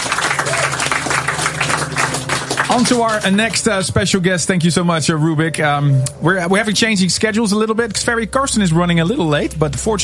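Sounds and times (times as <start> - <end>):
audience applause: 0.0 - 4.2
speech: 2.8 - 10.0.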